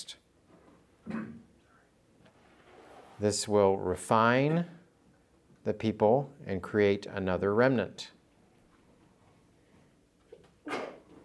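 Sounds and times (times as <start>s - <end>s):
sneeze: 1.1s - 1.5s, 10.6s - 11.1s
speech: 3.2s - 4.8s, 5.6s - 8.2s.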